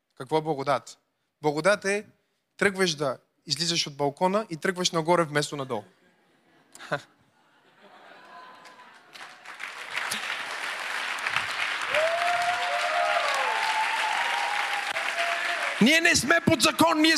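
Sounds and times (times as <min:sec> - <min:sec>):
speech: 0:00.2 - 0:06.0, 0:06.8 - 0:07.2, 0:15.8 - 0:17.1
laughter: 0:05.9 - 0:10.7
crowd applause: 0:08.0 - 0:17.1
cheers: 0:08.6 - 0:17.1.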